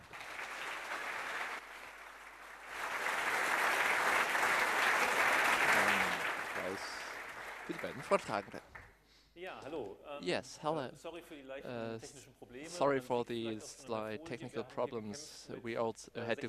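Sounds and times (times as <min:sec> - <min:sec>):
audience applause: 0:00.0 - 0:08.6
speech: 0:07.9 - 0:08.7, 0:09.4 - 0:16.4.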